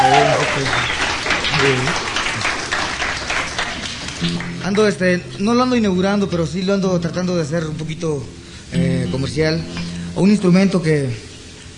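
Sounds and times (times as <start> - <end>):
audience applause: 0.0 - 4.7
speech: 0.6 - 1.0, 1.6 - 2.0, 4.2 - 11.3.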